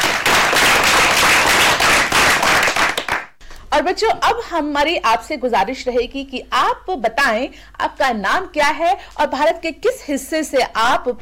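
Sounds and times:
audience applause: 0.0s - 3.4s
speech: 3.8s - 11.2s.

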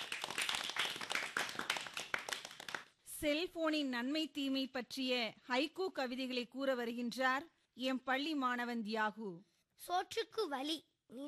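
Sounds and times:
school audience hand clapping honoring students: 0.0s - 3.0s
speech: 3.2s - 11.2s.

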